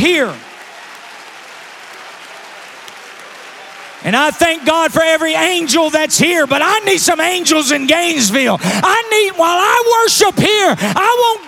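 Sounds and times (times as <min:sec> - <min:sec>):
speech: 0:00.0 - 0:00.5, 0:04.0 - 0:11.4
church congregation clapping during worship: 0:00.0 - 0:08.1.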